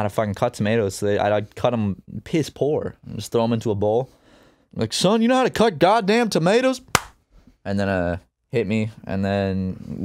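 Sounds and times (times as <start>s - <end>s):
speech: 0.0s - 10.0s
single hand clap: 6.9s - 7.2s.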